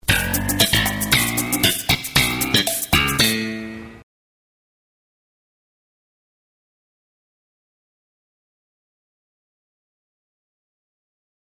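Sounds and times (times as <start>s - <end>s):
sitcom bass riff: 0.0s - 4.0s.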